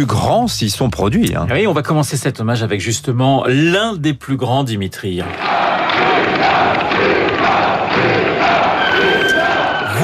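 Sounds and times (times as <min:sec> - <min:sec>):
speech: 0:00.0 - 0:06.6
Olympia concert audience cheering and applauding: 0:05.3 - 0:10.0.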